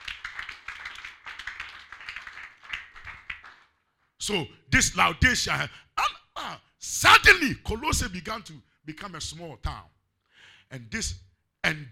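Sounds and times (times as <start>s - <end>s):
audience clapping hands: 0.0s - 4.2s
speech: 4.3s - 5.9s, 6.8s - 9.9s, 10.7s - 11.8s.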